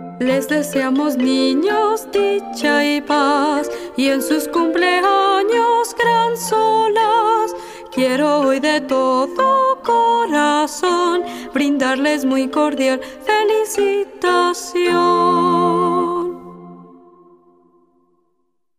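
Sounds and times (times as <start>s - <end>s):
children's birthday song in Spanish: 0.2s - 16.5s.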